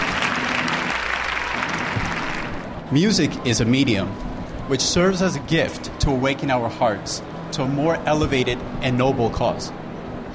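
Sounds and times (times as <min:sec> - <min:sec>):
audience applause: 0:00.0 - 0:02.7
speech: 0:02.9 - 0:09.8.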